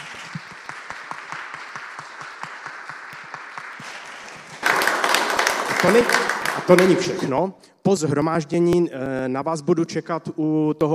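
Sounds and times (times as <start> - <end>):
audience applauding: 0.0 - 7.3
speech: 5.8 - 10.9.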